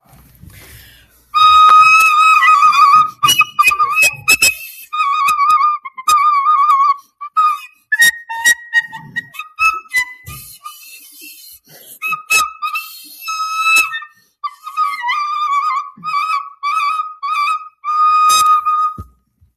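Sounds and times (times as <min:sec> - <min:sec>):
recorder playing badly: 0:01.4 - 0:11.1, 0:12.0 - 0:19.2.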